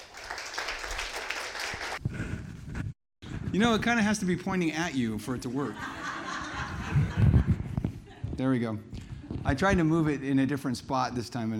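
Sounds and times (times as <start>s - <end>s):
audience applause welcoming a pastor: 0.0s - 2.0s
speech: 3.6s - 6.0s, 8.4s - 11.5s
laughter: 5.5s - 8.4s.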